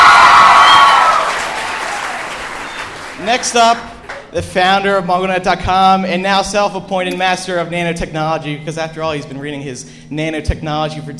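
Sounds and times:
cheers and whoops: 0:00.0 - 0:03.0
crowd applauding: 0:00.0 - 0:04.3
speech: 0:03.3 - 0:11.1.

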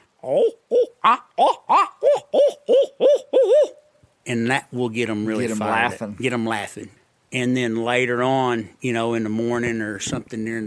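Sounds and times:
speech: 0:00.2 - 0:03.4, 0:04.3 - 0:10.6
hand-held owl hooter call hoots for turkey hunting: 0:00.2 - 0:03.9.

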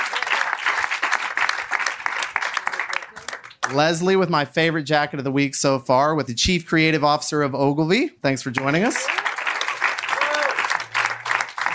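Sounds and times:
audience applause: 0:00.0 - 0:03.9, 0:08.6 - 0:11.7
speech: 0:03.7 - 0:09.2.

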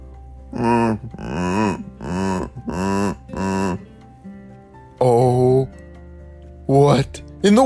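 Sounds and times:
speech: 0:00.5 - 0:01.8, 0:06.7 - 0:07.6
dinosaur roaring: 0:00.5 - 0:03.9.

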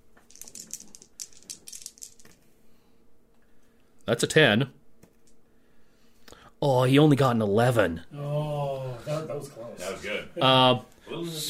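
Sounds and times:
dice clattering across a hard tabletop: 0:00.1 - 0:02.5
speech: 0:04.1 - 0:04.8, 0:06.6 - 0:08.5, 0:09.3 - 0:11.4.

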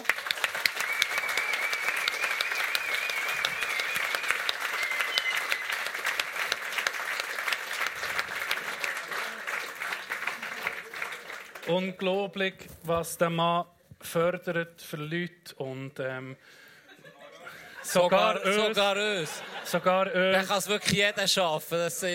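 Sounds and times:
sustained applause from a live audience: 0:00.0 - 0:12.0
occasional cheers or whistles: 0:00.6 - 0:06.2
speech: 0:11.7 - 0:16.6, 0:17.9 - 0:22.1
laughter: 0:16.9 - 0:21.2.

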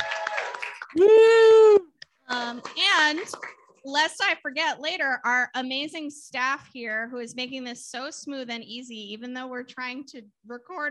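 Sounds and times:
audience applause: 0:00.0 - 0:01.0
speech: 0:00.9 - 0:01.2, 0:02.5 - 0:10.9.

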